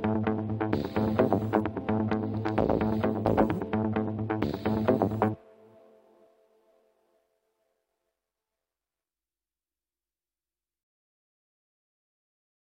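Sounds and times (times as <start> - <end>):
music beat: 0.0 - 5.4.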